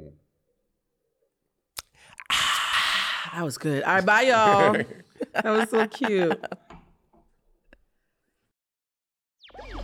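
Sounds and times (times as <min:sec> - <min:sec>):
person slurping a drink: 0:01.8 - 0:03.5
speech: 0:03.3 - 0:06.6
laughter: 0:03.9 - 0:06.7.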